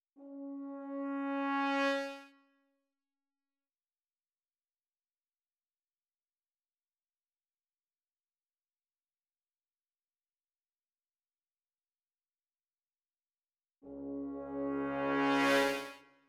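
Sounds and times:
brass instruments: 0:00.2 - 0:02.4, 0:13.8 - 0:16.1.

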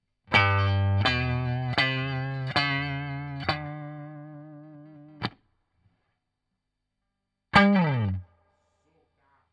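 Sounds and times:
guitar solo: 0:00.3 - 0:05.4, 0:07.5 - 0:08.3.

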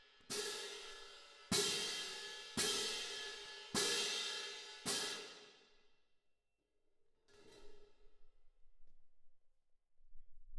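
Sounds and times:
cymbal: 0:00.0 - 0:05.7.

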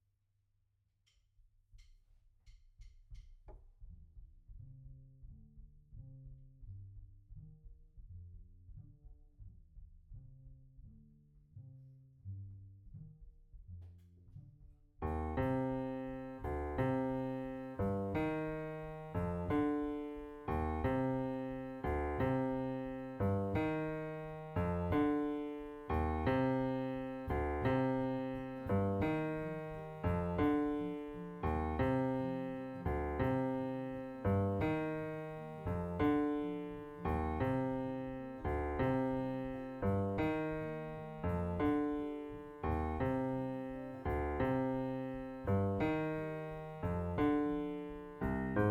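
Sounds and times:
piano note B: 0:15.0 - 0:48.6.

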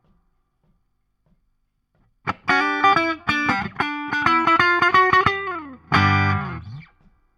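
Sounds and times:
guitar solo: 0:02.3 - 0:06.9.

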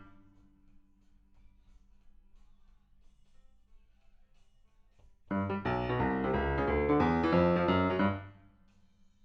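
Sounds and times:
rock and roll piano: 0:05.3 - 0:08.3.

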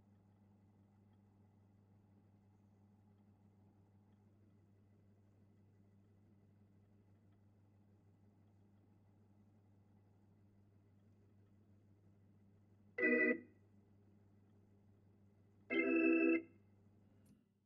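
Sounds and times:
Hammond organ: 0:15.7 - 0:16.4.

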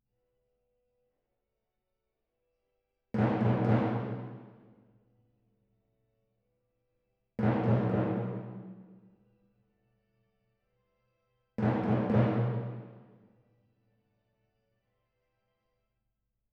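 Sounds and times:
timpani: 0:03.2 - 0:04.8, 0:07.4 - 0:09.2, 0:11.6 - 0:13.3.

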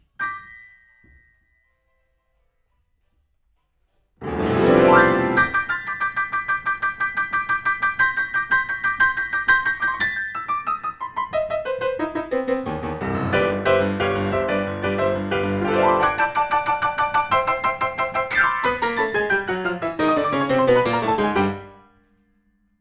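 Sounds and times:
rock and roll piano: 0:04.2 - 0:21.8.

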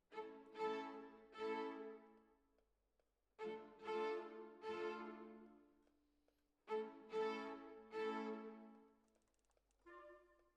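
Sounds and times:
violins: 0:00.0 - 0:02.2, 0:03.4 - 0:05.6, 0:06.7 - 0:08.9.

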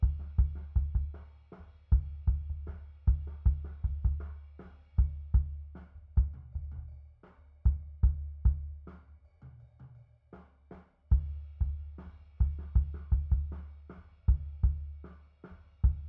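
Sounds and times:
sub bass kick drum: 0:00.0 - 0:01.2, 0:01.9 - 0:04.4, 0:05.0 - 0:06.9, 0:07.7 - 0:08.9, 0:11.1 - 0:13.7, 0:14.3 - 0:15.0, 0:15.8 - 0:16.0.

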